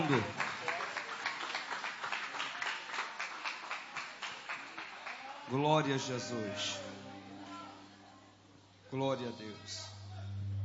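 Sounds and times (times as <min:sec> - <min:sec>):
church audience clapping in unison: 0:00.0 - 0:06.0
speech: 0:00.1 - 0:00.4, 0:05.5 - 0:07.0, 0:08.9 - 0:10.0.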